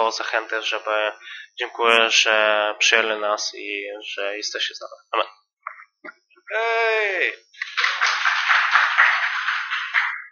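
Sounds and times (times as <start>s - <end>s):
speech: 0.1s - 5.4s, 6.5s - 8.0s
audience clapping: 7.1s - 10.2s.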